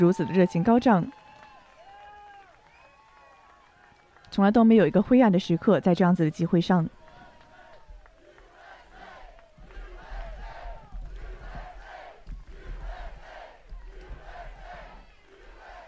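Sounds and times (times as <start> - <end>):
speech: 0.0 - 1.2, 4.3 - 7.0
crowd chanting at a Trump rally: 6.8 - 15.8.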